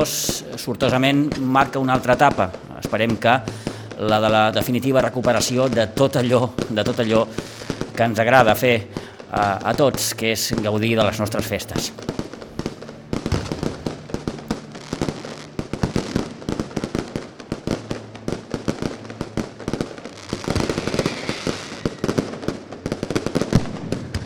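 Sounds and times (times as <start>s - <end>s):
speech: 0.0s - 12.3s
fireworks display crackling and banging: 0.0s - 24.2s.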